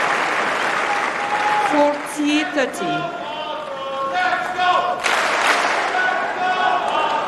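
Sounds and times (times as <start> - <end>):
crowd at a sports match chanting a player's name and cheering: 0.0 - 7.2
speech: 1.7 - 3.2.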